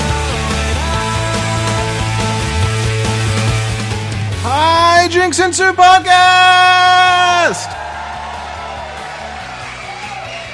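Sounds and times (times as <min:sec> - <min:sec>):
pulsing bass line of stepped notes: 0:00.0 - 0:10.5
speech: 0:05.1 - 0:07.8
crowd cheering and whooping: 0:06.4 - 0:10.5.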